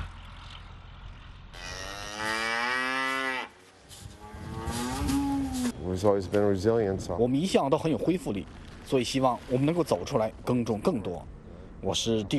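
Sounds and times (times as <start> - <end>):
cattle mooing: 1.5 - 3.5, 4.1 - 5.8
speech: 6.0 - 12.3.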